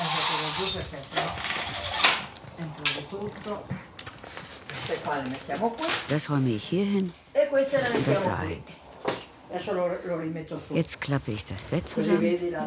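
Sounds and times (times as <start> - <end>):
window blinds being pulled up: 0.0 - 2.3
speech: 0.8 - 1.9, 2.6 - 3.9, 4.9 - 8.8, 9.5 - 12.6.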